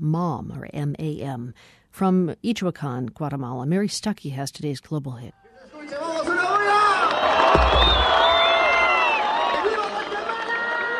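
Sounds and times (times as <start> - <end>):
speech: 0.0 - 6.0
crowd of thousands cheering at concert: 5.6 - 10.9.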